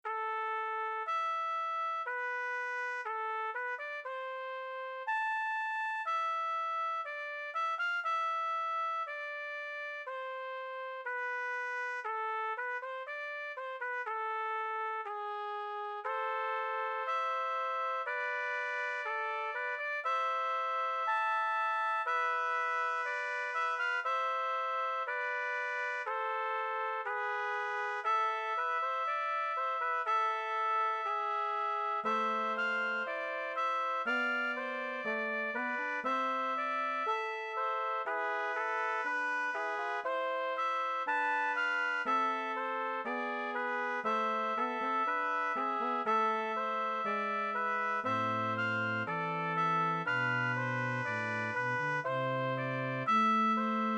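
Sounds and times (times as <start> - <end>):
brass ensemble canon in C major: 0.0 - 53.9.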